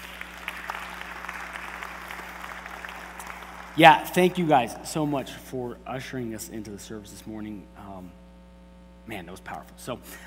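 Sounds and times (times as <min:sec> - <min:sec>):
audience applause: 0:00.0 - 0:04.7
speech: 0:03.8 - 0:08.2, 0:09.1 - 0:10.2.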